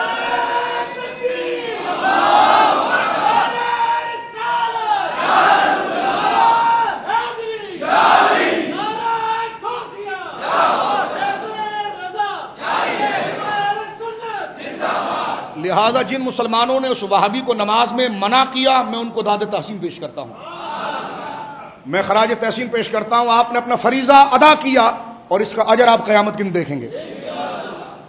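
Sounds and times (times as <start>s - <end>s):
crowd at a religious gathering chanting a slogan: 0.0s - 3.8s, 4.5s - 7.1s, 7.7s - 9.0s, 10.2s - 11.6s, 12.3s - 13.8s, 14.4s - 15.6s, 27.0s - 28.0s
speech: 15.9s - 21.0s, 21.8s - 27.1s.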